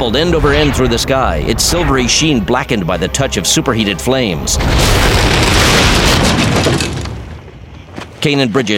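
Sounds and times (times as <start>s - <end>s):
explosion from remote detonator: 0.0s - 2.4s, 4.5s - 7.4s
speech: 0.0s - 7.0s, 8.2s - 8.7s.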